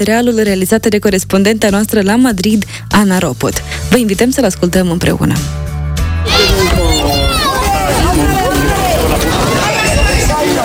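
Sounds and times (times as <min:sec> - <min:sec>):
speech: 0:00.0 - 0:05.7
happy children shouting and chattering while playing outdoors: 0:06.2 - 0:10.6.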